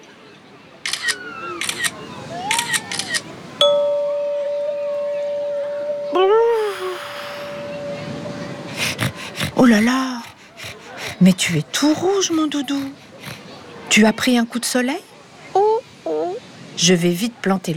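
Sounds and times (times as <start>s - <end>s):
camera shutter click: 0.9s - 2.0s, 2.5s - 3.3s
steady held tone: 3.6s - 9.0s
speech: 9.7s - 10.1s, 11.3s - 13.1s, 13.9s - 15.1s, 16.8s - 17.7s.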